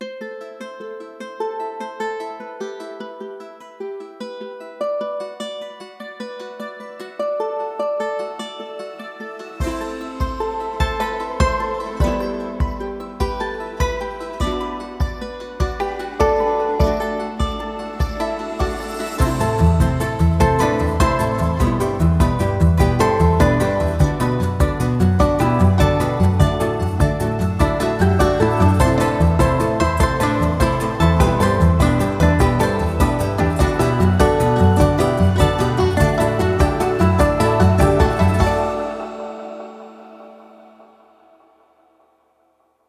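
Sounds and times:
South American string instruments: 0.0s - 41.6s.

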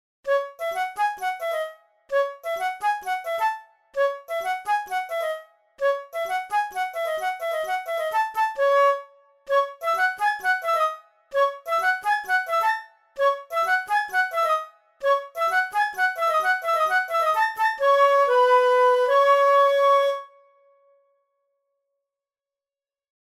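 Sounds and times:
flute: 0.2s - 21.0s.

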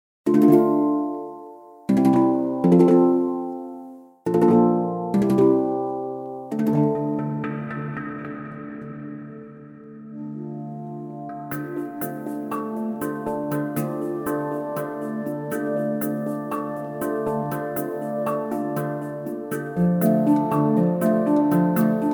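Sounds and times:
pure real handpan: 0.3s - 22.1s.

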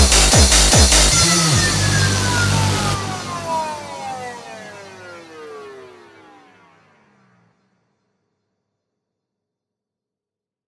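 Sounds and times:
rave samples: 0.0s - 6.0s.

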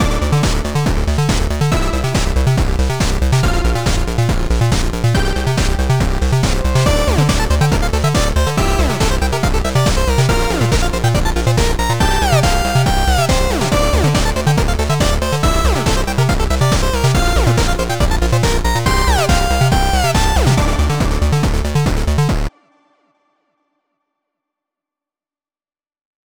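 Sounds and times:
chiptune music: 0.0s - 22.5s.

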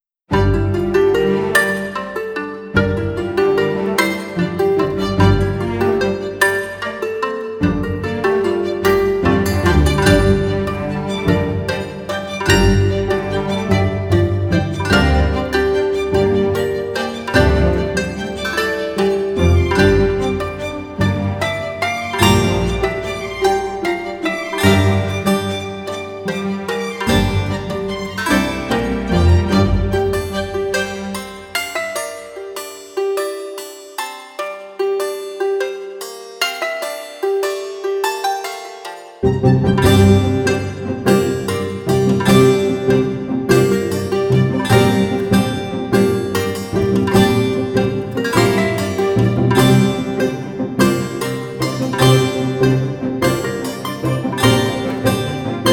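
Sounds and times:
strumstick: 0.3s - 55.7s.

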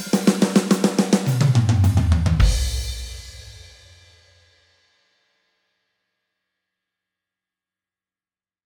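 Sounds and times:
standard rock drum beat: 0.0s - 4.0s.

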